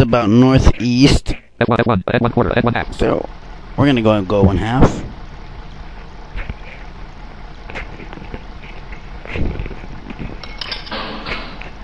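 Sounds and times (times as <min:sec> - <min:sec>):
speech: 0:00.0 - 0:05.1
steady mechanical rumble: 0:01.4 - 0:11.8
clanks and thuds of a torpedo loaded into submarine torpedo tubes in a video game: 0:10.2 - 0:11.6.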